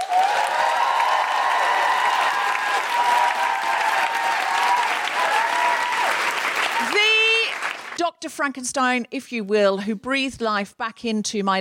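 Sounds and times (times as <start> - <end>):
audience applause: 0.0 - 8.0
speech: 8.2 - 11.5.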